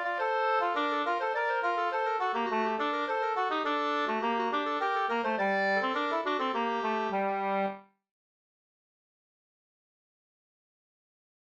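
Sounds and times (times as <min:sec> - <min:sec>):
two-part slangpolska: 0:00.0 - 0:07.8.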